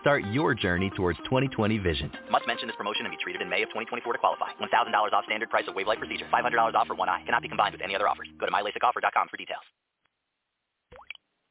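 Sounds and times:
speech: 0.0s - 9.8s
unaged whiskey dripping through charcoal at Jack Daniel's in Lynchburg, Tennessee: 10.9s - 11.3s.

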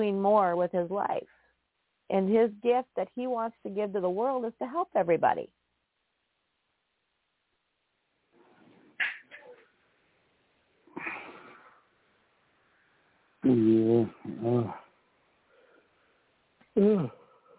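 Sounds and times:
speech: 0.0s - 1.4s, 2.1s - 5.6s, 13.4s - 14.8s, 16.8s - 17.2s
person yawning: 16.8s - 17.2s.

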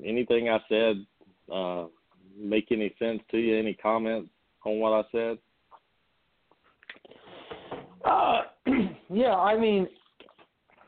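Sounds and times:
speech: 0.0s - 5.5s, 8.0s - 10.0s
throat clearing: 8.1s - 9.1s.

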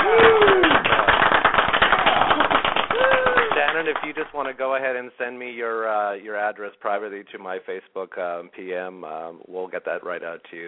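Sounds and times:
applause sound effect from clap button: 0.0s - 4.8s
speech: 4.1s - 10.6s.

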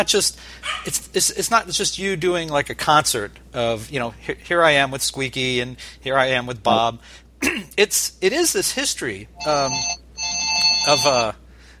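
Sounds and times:
speech: 0.0s - 10.0s, 10.8s - 11.4s
ventriloquist's voice imitating a ringing telephone: 9.4s - 11.3s.

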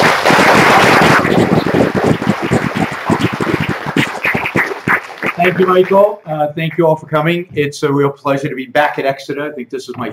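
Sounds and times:
audience applause: 0.0s - 6.1s
speech: 5.5s - 10.1s.

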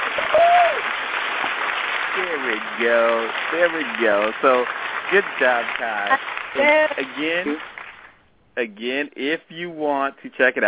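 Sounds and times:
applause: 0.0s - 8.2s
speech: 2.2s - 7.7s, 8.6s - 10.6s.

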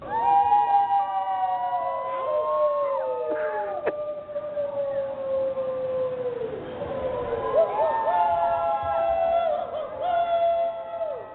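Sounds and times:
residents howling together like wolves: 0.0s - 11.3s.

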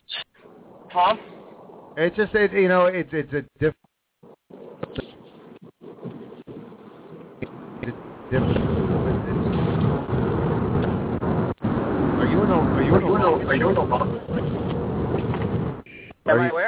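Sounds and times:
speech: 1.0s - 1.4s, 2.0s - 3.9s, 8.3s - 8.6s, 13.5s - 14.5s, 16.3s - 16.6s
rushing wind noise from a moving car: 4.2s - 15.9s
moving car interior rumble over a speakerphone call: 4.5s - 15.9s.

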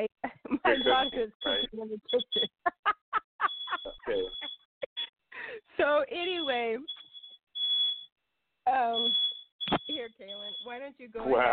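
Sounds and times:
speech: 0.0s - 2.4s
laughter: 0.3s - 5.8s, 11.2s - 11.5s
smoke alarm beeping: 0.7s - 5.1s, 6.2s - 8.1s, 8.9s - 11.4s.

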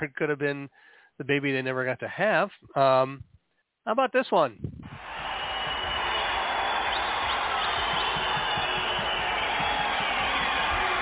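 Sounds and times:
speech: 0.0s - 3.3s, 3.9s - 5.0s
crowd cheering wildly: 4.9s - 11.0s.

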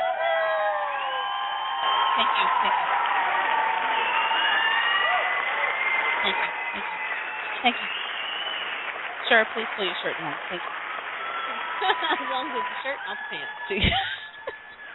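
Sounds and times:
audience cheering and applauding: 0.0s - 14.9s
laughter: 2.2s - 3.0s, 6.2s - 8.1s, 11.4s - 14.9s
speech: 2.2s - 3.0s, 7.6s - 7.9s, 9.3s - 10.8s, 11.8s - 14.2s.

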